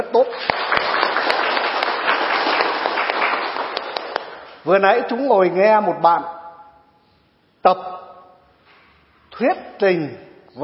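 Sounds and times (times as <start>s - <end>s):
speech: 0.0s - 0.6s, 4.7s - 6.4s, 7.6s - 8.0s, 9.4s - 10.6s
audience applause: 0.3s - 4.4s.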